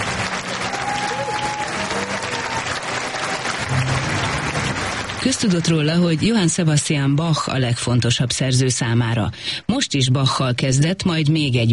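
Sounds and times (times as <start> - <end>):
large concert audience applauding: 0.0 - 6.6
whistles and cheers: 0.5 - 3.7
speech: 5.2 - 11.7.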